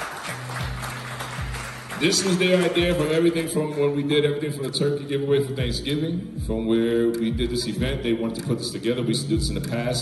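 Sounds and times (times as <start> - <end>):
crowd applauding: 0.0 - 4.1
speech: 2.0 - 10.0.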